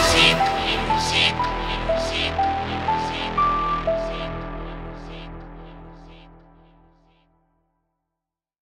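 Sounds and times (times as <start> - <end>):
electro freestyle music: 0.0 - 6.3.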